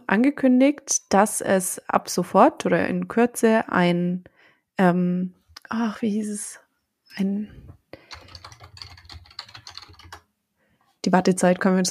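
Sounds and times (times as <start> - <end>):
speech: 0.1 - 8.2, 11.0 - 11.8
typing a web search on a computer keyboard: 8.0 - 10.3.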